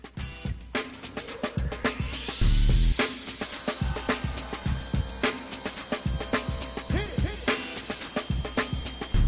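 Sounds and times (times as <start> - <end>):
circular saw cutting wood: 0.8 - 9.2.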